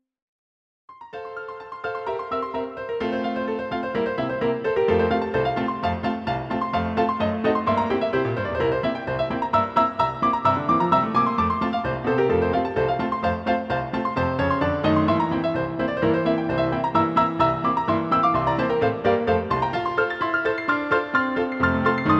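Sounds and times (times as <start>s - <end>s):
clarinet polka: 2.5s - 22.1s.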